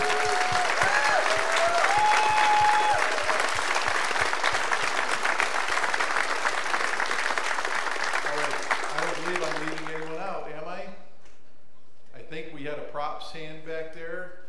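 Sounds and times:
audience applause: 0:00.0 - 0:10.3.

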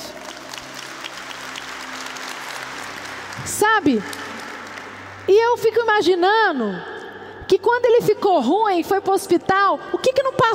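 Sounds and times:
audience applause: 0:00.0 - 0:05.3
speech: 0:03.4 - 0:04.2, 0:05.3 - 0:06.9, 0:07.5 - 0:10.5.

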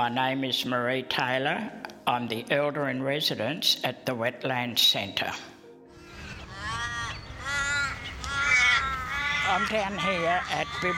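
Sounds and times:
speech: 0:00.0 - 0:05.5, 0:09.5 - 0:10.9
black crows called Walliabups cawing at Bibra Lake: 0:05.9 - 0:10.9.

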